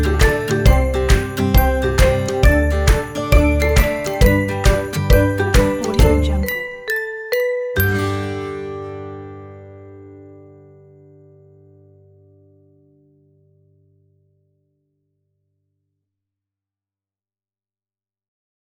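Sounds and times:
playful happy music: 0.0s - 10.0s.

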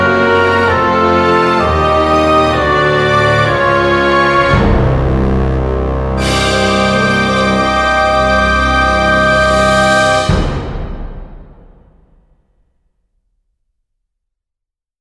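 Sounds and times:
epic evil music: 0.0s - 12.0s.

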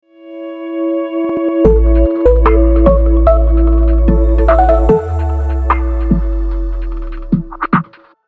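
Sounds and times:
modern tech intro logo music: 1.6s - 7.7s.

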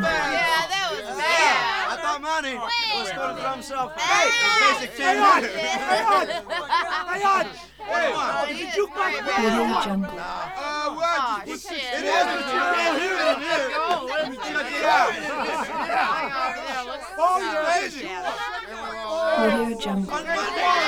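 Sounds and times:
laughter: 0.0s - 20.8s
people hollering in a bar: 0.0s - 20.8s
rowdy bar conversation: 0.0s - 20.8s.

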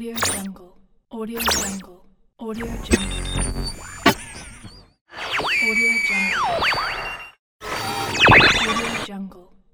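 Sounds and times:
radio tuning: 0.1s - 0.5s, 1.4s - 1.9s, 2.6s - 9.1s.

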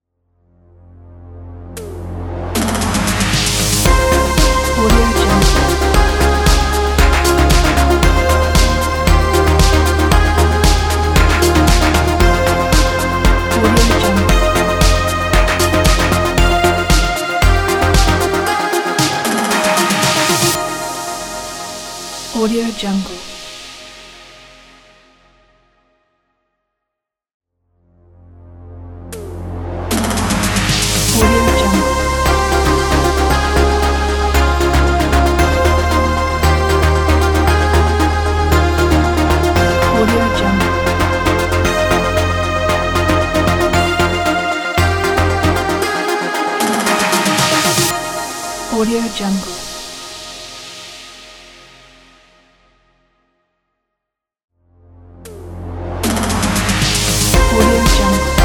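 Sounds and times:
synthwave logo: 0.6s - 22.4s, 28.0s - 48.9s, 54.8s - 58.4s.

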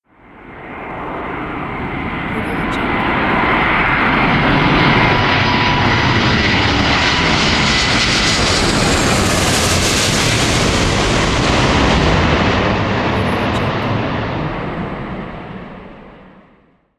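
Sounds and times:
Boeing airplane passing: 0.6s - 16.4s.

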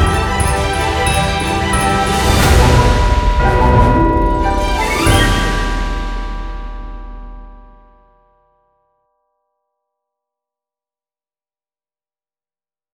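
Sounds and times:
hip hop Christmas music: 0.0s - 7.7s.

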